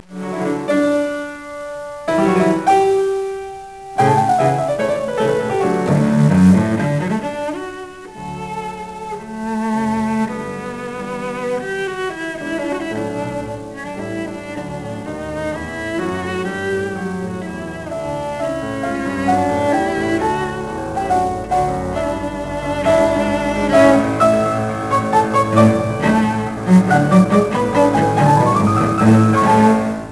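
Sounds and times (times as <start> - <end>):
cello sonata: 0.0 - 30.1.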